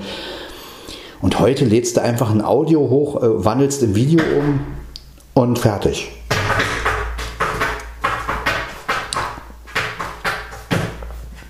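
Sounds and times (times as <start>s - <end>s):
speech: 1.2s - 4.8s, 5.4s - 6.2s
tomcat making clattering knocks and bumps in the kitchen: 6.2s - 11.4s.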